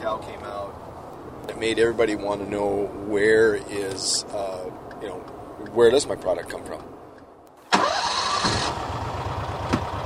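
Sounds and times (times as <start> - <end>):
speech: 1.6 - 7.0
ATV engine starting and idling: 7.7 - 10.0.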